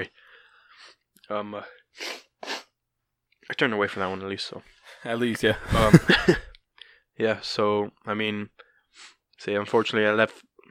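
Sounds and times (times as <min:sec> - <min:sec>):
sniffing into the microphone: 0:00.4 - 0:01.0, 0:01.9 - 0:02.8, 0:08.9 - 0:09.2
speech: 0:00.8 - 0:02.1, 0:03.5 - 0:06.5, 0:07.2 - 0:10.5
laughter: 0:05.4 - 0:06.5.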